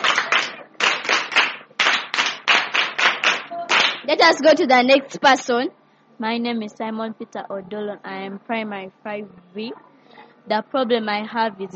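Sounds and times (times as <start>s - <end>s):
crowd clapping in a steady patterned rhythm: 0.0s - 4.3s
speech: 4.1s - 11.7s.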